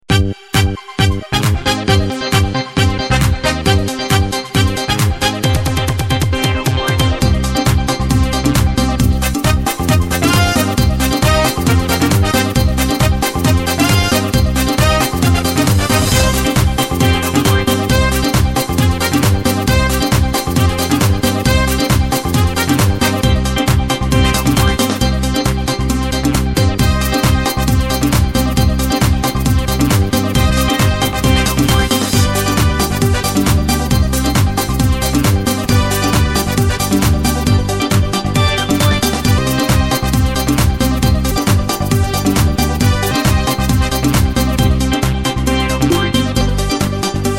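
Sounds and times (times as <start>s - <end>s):
Latin dance music: 0.0s - 47.3s.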